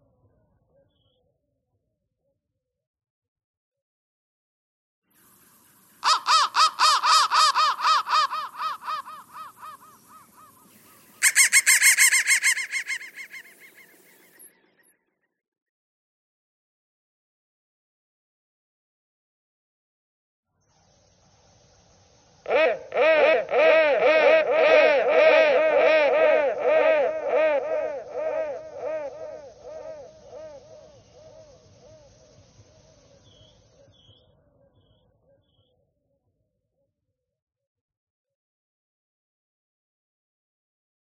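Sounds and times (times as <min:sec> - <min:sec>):
crow cawing: 0:06.0 - 0:10.6, 0:11.2 - 0:14.2, 0:23.4 - 0:31.5.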